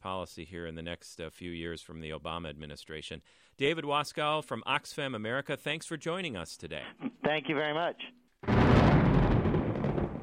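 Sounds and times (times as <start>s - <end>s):
speech: 0.2s - 9.0s
thunder: 8.4s - 10.2s.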